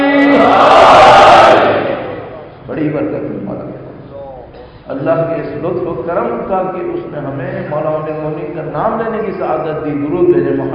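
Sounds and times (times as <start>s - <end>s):
crowd responding to a religious chant: 0.0s - 2.3s
speech: 5.0s - 10.7s.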